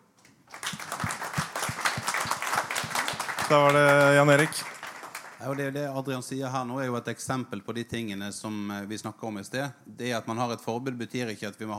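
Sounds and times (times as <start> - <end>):
audience applause: 0.5 - 5.7
speech: 3.5 - 4.7, 5.4 - 11.7.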